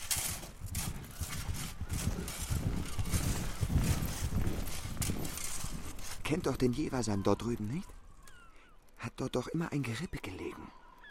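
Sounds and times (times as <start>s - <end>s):
soft rustle: 0.0s - 6.9s
white horse's hooves clopping at a walk: 0.0s - 8.3s
speech: 6.3s - 8.0s, 9.1s - 10.8s.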